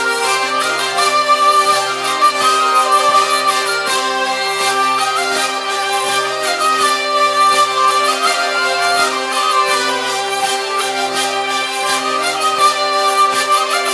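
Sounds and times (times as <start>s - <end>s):
hurdy-gurdies playing at a festival: 0.0s - 13.9s.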